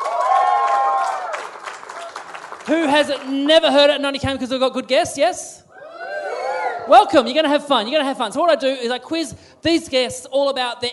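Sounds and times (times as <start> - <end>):
audience applause: 0.0 - 3.6
speech: 2.7 - 5.6, 6.9 - 10.9.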